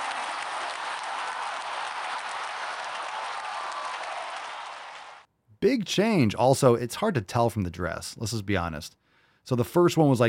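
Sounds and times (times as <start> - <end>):
round of applause: 0.0 - 5.3
speech: 5.6 - 10.2.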